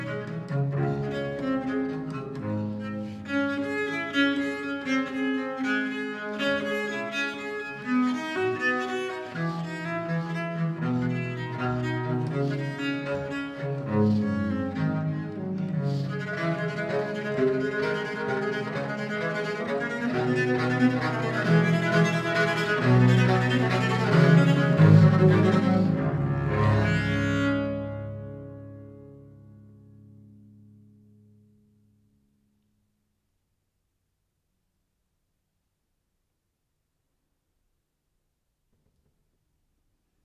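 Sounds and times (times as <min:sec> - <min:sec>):
viol improvisation: 0:00.0 - 0:31.0.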